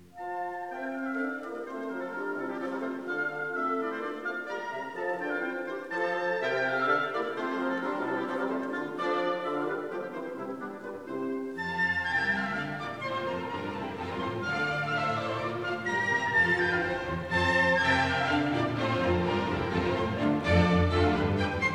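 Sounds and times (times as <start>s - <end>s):
orchestral suite hornpipe: 0.0s - 21.7s.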